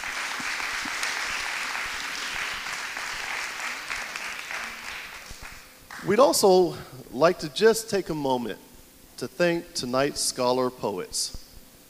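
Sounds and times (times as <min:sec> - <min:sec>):
audience applause: 0:00.0 - 0:06.2
speech: 0:06.0 - 0:11.4.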